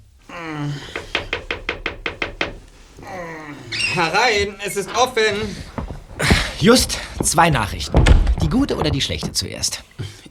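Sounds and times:
speech: 0.4 - 1.0, 4.0 - 10.1
knocking on a hotel room door: 0.9 - 3.1, 4.4 - 9.4.

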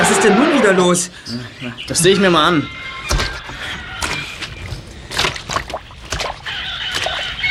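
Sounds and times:
speech: 0.2 - 3.2
car wheels stuck in sloshing mud: 3.0 - 7.4.

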